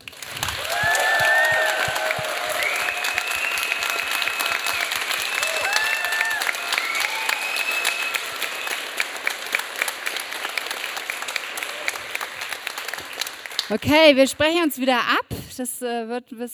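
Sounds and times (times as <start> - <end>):
audience applause: 0.0 - 13.8
high whoops and cheers: 0.3 - 8.9
speech: 13.7 - 16.5.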